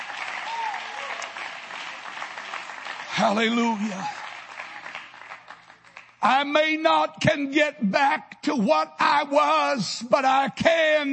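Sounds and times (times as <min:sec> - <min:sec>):
audience clapping and applauding: 0:00.0 - 0:06.5
speech: 0:03.2 - 0:04.2, 0:06.2 - 0:11.1.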